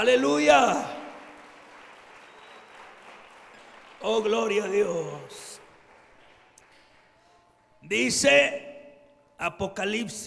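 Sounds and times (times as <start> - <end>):
speech: 0.0 - 1.0, 4.0 - 5.4, 7.8 - 8.7, 9.4 - 10.2
church congregation clapping during a Spanish-language service: 0.0 - 7.2.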